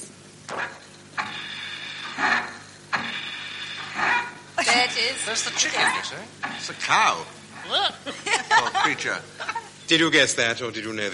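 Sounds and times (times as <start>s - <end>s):
milking machine with a leaking teat holder: 0.6s - 7.9s
speech: 5.0s - 11.1s
laughter: 8.0s - 9.7s.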